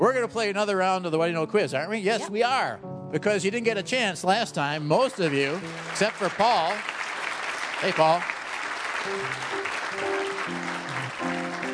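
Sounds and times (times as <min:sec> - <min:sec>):
speech: 0:00.0 - 0:07.0, 0:07.8 - 0:08.4, 0:09.0 - 0:10.7
audience applause: 0:04.8 - 0:11.7.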